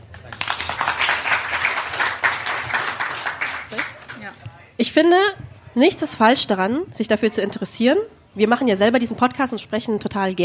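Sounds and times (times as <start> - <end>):
small applause: 0.0 - 4.5
speech: 4.8 - 10.4.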